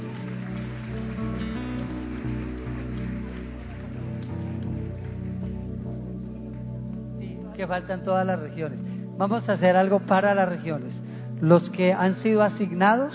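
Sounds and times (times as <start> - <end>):
audience applauding: 0.0 - 7.5
speech: 7.6 - 13.1.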